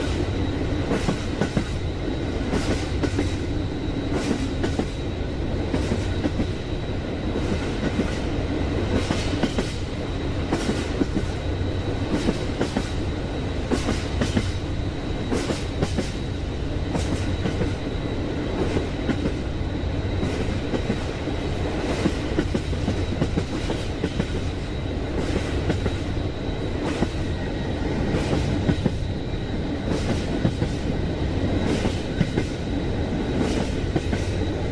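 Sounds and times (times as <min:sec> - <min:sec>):
train moving on tracks: 0:00.0 - 0:34.6.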